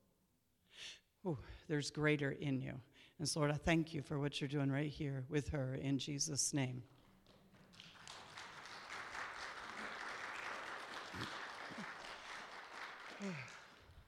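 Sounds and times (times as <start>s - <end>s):
speech: 1.2s - 7.0s, 13.2s - 13.5s
person clapping hands: 7.0s - 14.0s.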